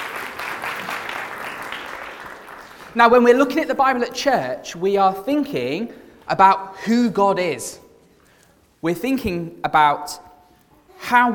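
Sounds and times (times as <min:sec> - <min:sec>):
church congregation applauding a young Bible reader: 0:00.0 - 0:03.5
speech: 0:02.9 - 0:07.8, 0:08.8 - 0:10.2, 0:11.0 - 0:11.3.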